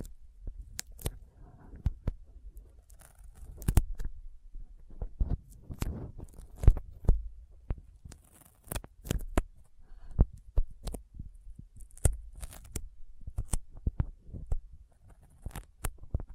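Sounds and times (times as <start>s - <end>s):
intense sticky finger sounds: 0.0s - 4.2s, 4.9s - 16.3s.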